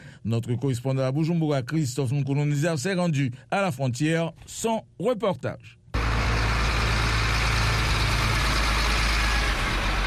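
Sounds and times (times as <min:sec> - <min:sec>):
speech: 0:00.2 - 0:05.8
large transport trucks idling at border with the DRC: 0:06.0 - 0:10.0.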